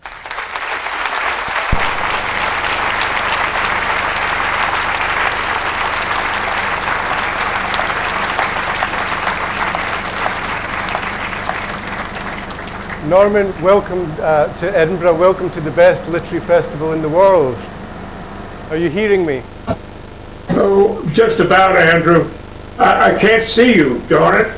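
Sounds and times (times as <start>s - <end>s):
audience applause at the Edinburgh literary festival for Norman Mailer: 0.0s - 14.0s
speech: 13.1s - 17.8s, 18.7s - 19.8s, 21.2s - 24.5s.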